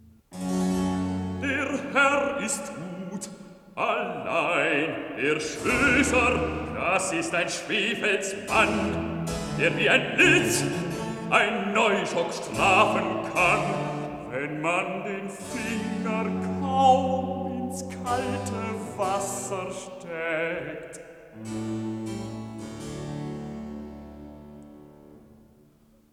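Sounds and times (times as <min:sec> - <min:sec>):
bass singer recitative: 0:01.3 - 0:21.8.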